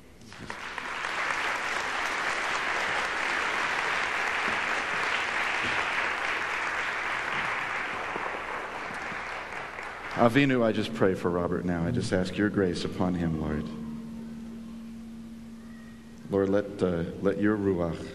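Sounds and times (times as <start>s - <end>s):
congregation applauding to welcome a guest speaker: 0.2s - 10.8s
speech: 10.2s - 13.8s, 16.4s - 18.1s.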